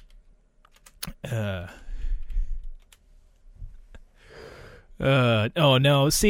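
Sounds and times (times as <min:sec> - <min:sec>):
typing a search on a computer keyboard: 0:00.0 - 0:01.1, 0:02.2 - 0:03.0
speech: 0:01.3 - 0:01.9, 0:05.0 - 0:06.2.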